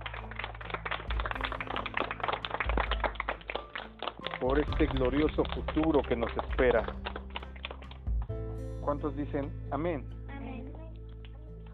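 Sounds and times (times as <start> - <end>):
audience clapping: 0.0 - 8.4
speech: 4.4 - 7.1, 8.8 - 10.2.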